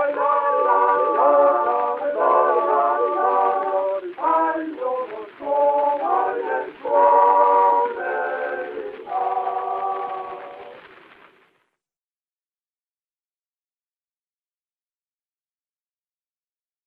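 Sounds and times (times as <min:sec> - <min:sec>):
gramophone playing: 0:00.0 - 0:10.7.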